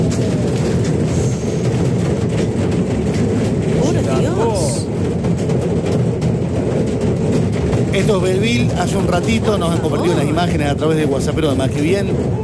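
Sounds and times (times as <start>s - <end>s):
hail falling on a bus: 0.0s - 12.4s
speech: 8.1s - 12.4s
laughter: 8.8s - 10.8s.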